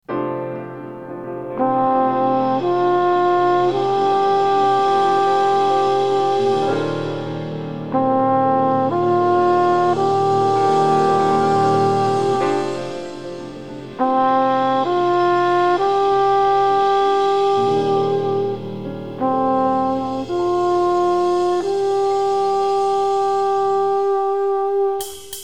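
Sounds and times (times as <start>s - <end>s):
music without bass: 1.5s - 25.4s.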